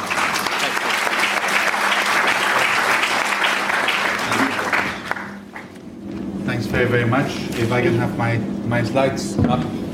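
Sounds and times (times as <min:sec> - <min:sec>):
audience applause: 0:00.0 - 0:05.8
speech: 0:06.8 - 0:09.8.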